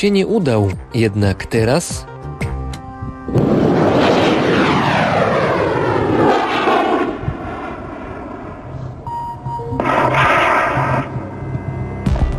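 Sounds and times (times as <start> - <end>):
speech: 0.0 - 2.4
homemade manned rocket launching over the desert: 3.3 - 9.0, 9.8 - 11.3
whining tones falling in pitch: 4.4 - 12.3.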